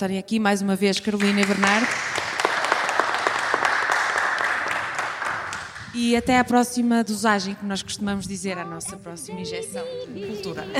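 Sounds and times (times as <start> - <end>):
speech: 0.0 - 2.1, 6.0 - 10.7
crowd applauding: 1.2 - 6.1.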